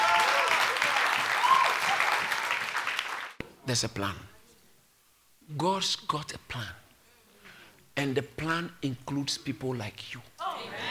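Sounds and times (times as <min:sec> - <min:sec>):
audience clapping: 0:00.0 - 0:03.4
speech: 0:03.7 - 0:04.3, 0:05.5 - 0:06.8, 0:08.0 - 0:10.3.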